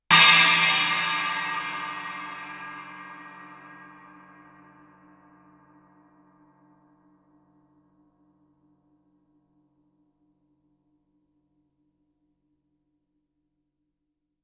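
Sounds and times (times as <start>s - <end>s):
Chinese suspended cymbal struck loudly with stick shoulder: 0.1s - 4.5s.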